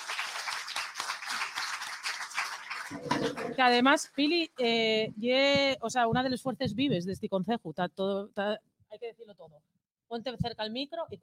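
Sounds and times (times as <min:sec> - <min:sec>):
applause: 0:00.0 - 0:03.8
speech: 0:02.9 - 0:11.2.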